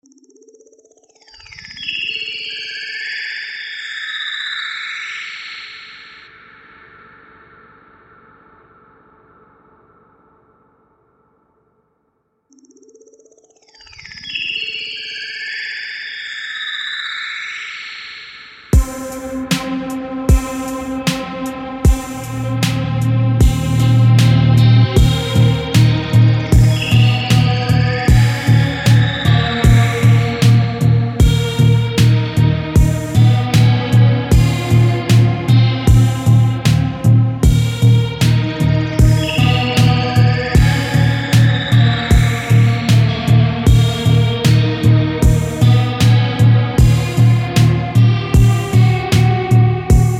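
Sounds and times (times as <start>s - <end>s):
808 type hip hop beat: 18.8s - 50.1s.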